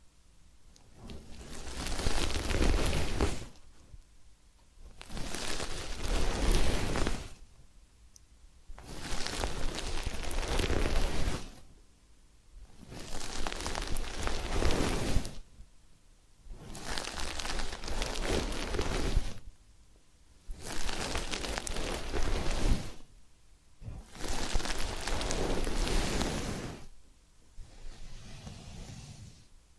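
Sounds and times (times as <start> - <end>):
rough hissing rubbing of massage and ear cleaning: 1.0 - 3.6, 5.0 - 7.4, 8.8 - 11.7, 12.7 - 15.4, 16.5 - 19.5, 20.5 - 23.1, 23.8 - 27.0, 27.6 - 29.5.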